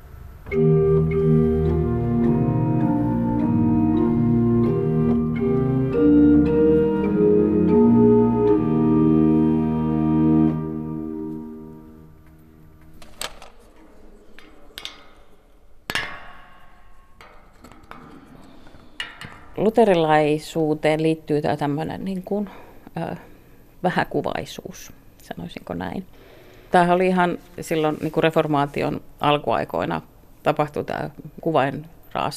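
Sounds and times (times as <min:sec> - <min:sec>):
pipe organ playing a slow hymn with manuals coupled: 0:00.5 - 0:12.4
scattered clicks and clatters: 0:12.8 - 0:15.4
speech: 0:19.8 - 0:32.3.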